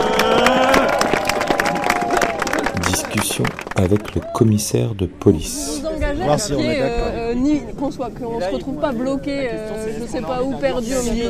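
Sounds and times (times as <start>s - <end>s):
crowd clapping at a cyclists' street rally: 0.0s - 5.0s
speech: 3.4s - 11.2s.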